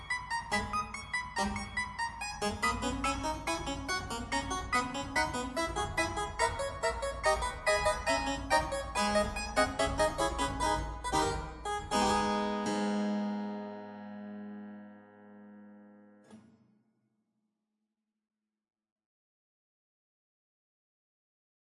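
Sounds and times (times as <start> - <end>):
solo harpsichord prelude: 0.0 - 16.2.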